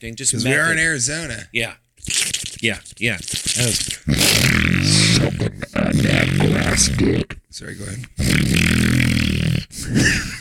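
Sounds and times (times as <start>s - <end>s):
speech: 0.0s - 8.9s
person snorting into the microphone: 3.2s - 7.3s, 8.2s - 10.3s.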